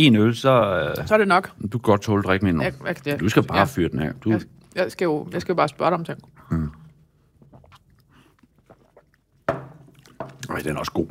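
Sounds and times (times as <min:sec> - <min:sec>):
speech: 0:00.0 - 0:06.8, 0:10.6 - 0:11.1
chewing and biting while eating grilled chicken: 0:06.2 - 0:10.5.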